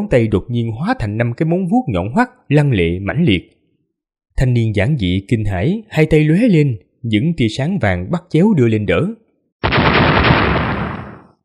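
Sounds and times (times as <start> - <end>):
speech: 0.0 - 3.6, 4.4 - 9.8
dull thudding blast impacts: 9.6 - 11.4.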